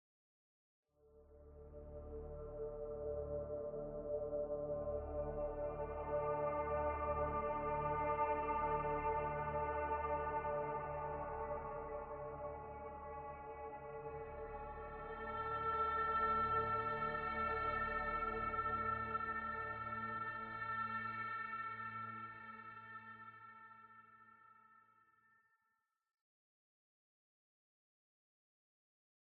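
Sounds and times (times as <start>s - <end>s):
ambient music: 1.1s - 23.2s.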